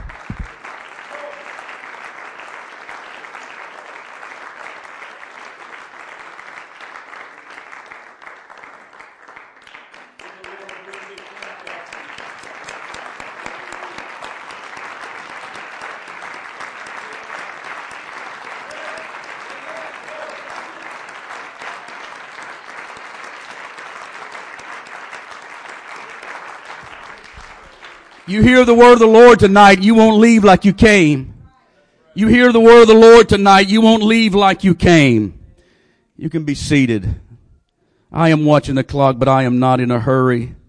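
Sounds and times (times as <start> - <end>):
audience applause: 0.0 - 29.9
speech: 28.3 - 31.3, 32.2 - 35.4, 36.2 - 37.2, 38.1 - 40.6.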